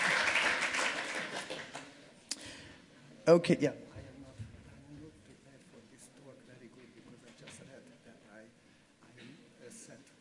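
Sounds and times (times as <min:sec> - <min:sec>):
round of applause: 0:00.0 - 0:02.0
speech: 0:03.2 - 0:03.8.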